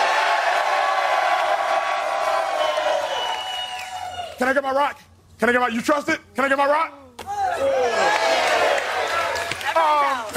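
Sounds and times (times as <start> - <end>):
crowd cheering: 0.0 - 4.4, 7.3 - 10.3
speech: 4.4 - 8.2
laughter: 10.1 - 10.3.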